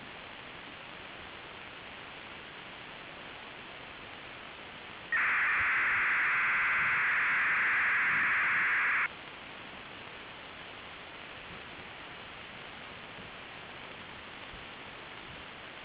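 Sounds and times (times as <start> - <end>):
PSK digital modem signal at 1200 baud: 5.2 - 9.1.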